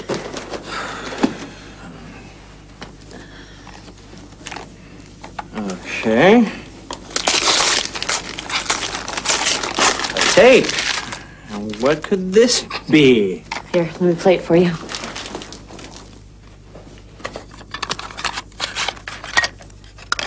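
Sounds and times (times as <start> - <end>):
speech: 6.0 - 6.6, 10.4 - 10.8, 11.8 - 14.9
paper crinkling and tearing as a wrapped present is opened: 7.0 - 12.2, 14.7 - 16.2.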